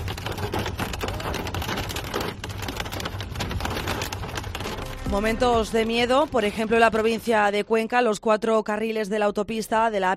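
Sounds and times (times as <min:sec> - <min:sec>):
hail hammering on cars: 0:00.0 - 0:05.1
speech: 0:05.1 - 0:10.1.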